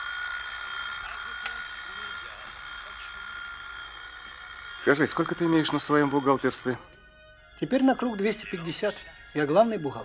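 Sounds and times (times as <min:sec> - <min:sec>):
alarm clock ringing: 0:00.0 - 0:07.0
speech: 0:04.9 - 0:06.9, 0:07.6 - 0:10.0.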